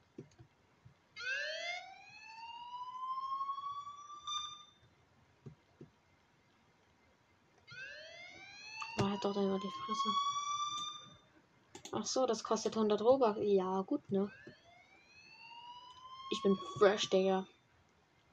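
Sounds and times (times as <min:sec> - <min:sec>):
police siren sound effect: 0:01.2 - 0:04.8, 0:07.7 - 0:11.2, 0:14.2 - 0:17.2
speech: 0:09.2 - 0:10.4, 0:11.9 - 0:14.6, 0:16.4 - 0:17.6.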